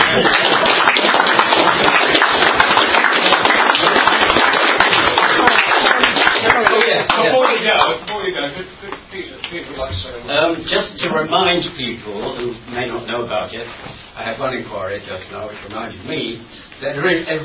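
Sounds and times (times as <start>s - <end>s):
audience clapping for the panel: 0.0s - 8.2s
speech: 0.2s - 0.4s, 11.2s - 17.4s.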